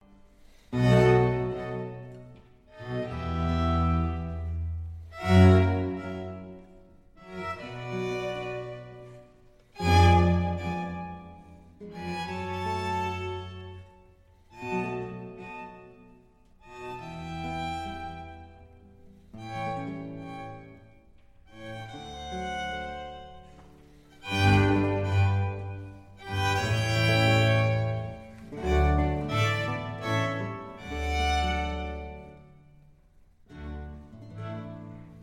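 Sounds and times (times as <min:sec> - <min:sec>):
string orchestra playing a slow concerto movement: 0:00.0 - 0:35.2.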